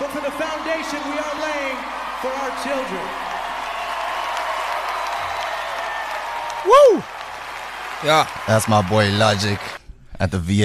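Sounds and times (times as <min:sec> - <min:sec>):
audience applauding: 0:00.0 - 0:09.8
speech: 0:00.9 - 0:01.5, 0:02.2 - 0:03.2, 0:06.6 - 0:07.1, 0:08.0 - 0:10.6.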